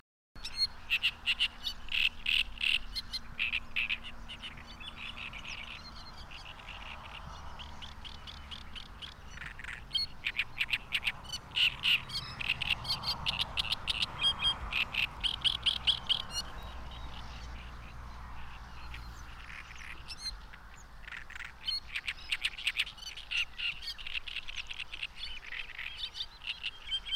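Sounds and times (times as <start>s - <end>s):
frogs calling at a lake: 0.4s - 27.1s.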